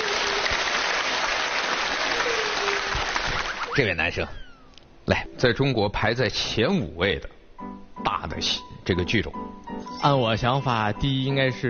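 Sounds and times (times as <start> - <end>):
audience applause: 0.0 - 3.9
speech: 3.8 - 4.4, 5.1 - 11.6.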